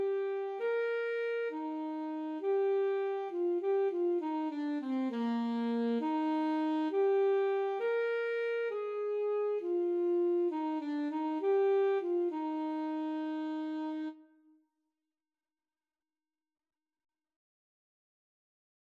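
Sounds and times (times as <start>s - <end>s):
alto saxophone duet: 0.0s - 14.4s.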